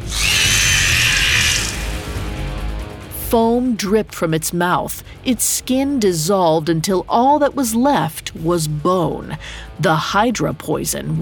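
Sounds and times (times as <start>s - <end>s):
monstrous bird letting out a terrible scream: 0.0s - 1.9s
speech: 3.3s - 11.1s.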